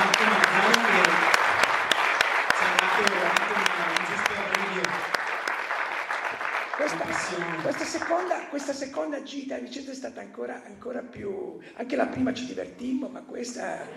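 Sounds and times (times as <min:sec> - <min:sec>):
audience applause: 0:00.0 - 0:08.4
speech: 0:09.2 - 0:13.9.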